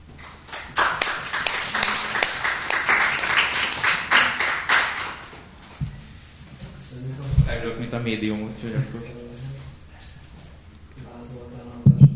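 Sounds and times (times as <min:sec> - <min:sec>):
strong applause: 0:00.2 - 0:05.4
speech: 0:07.9 - 0:09.2.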